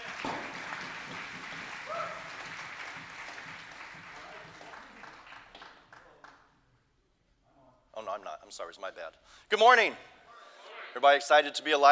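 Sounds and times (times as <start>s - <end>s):
audience applause welcoming a speaker: 0.0s - 6.4s
speech: 8.1s - 10.1s, 10.9s - 11.8s.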